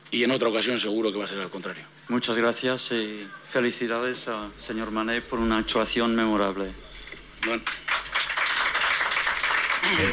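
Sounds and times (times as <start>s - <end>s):
speech: 0.1s - 7.8s, 9.9s - 10.1s
journalists applauding in the Westfalen stadium press room: 7.4s - 10.1s.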